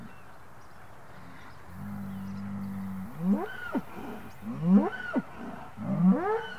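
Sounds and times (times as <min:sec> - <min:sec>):
two cows mooing to each other: 0:01.8 - 0:06.5.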